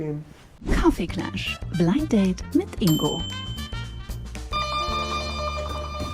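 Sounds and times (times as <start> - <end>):
speech: 0.0 - 3.5
electronic doorbell chime ringing: 2.9 - 6.1.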